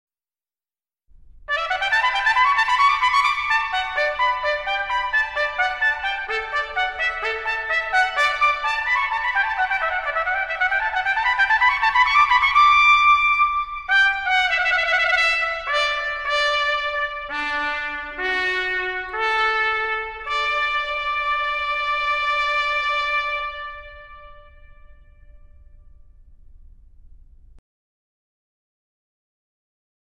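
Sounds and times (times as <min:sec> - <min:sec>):
wedding fanfare on trumpet: 0:01.5 - 0:25.4.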